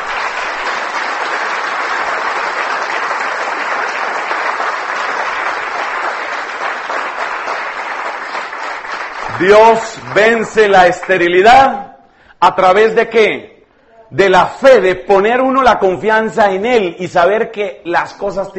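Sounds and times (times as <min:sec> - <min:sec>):
audience applauding: 0:00.0 - 0:11.4
speech: 0:09.4 - 0:13.5, 0:14.1 - 0:18.5.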